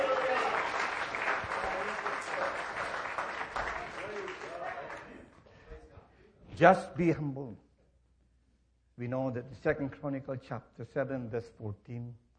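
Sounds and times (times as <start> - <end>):
audience applause: 0.0 - 5.3
speech: 6.6 - 7.7, 9.0 - 12.2.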